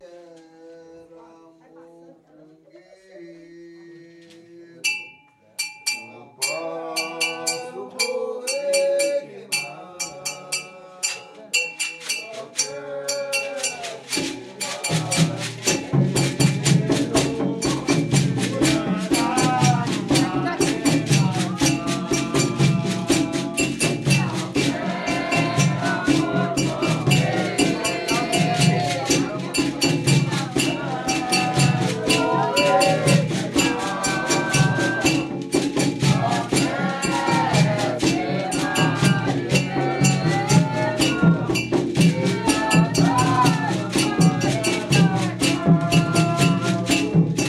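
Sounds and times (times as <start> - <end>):
tambor de mina drumming: 5.6 - 47.4.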